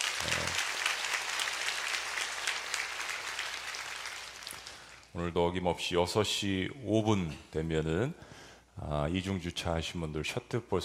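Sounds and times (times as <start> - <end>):
audience applauding: 0.0 - 5.1
speech: 5.2 - 10.8.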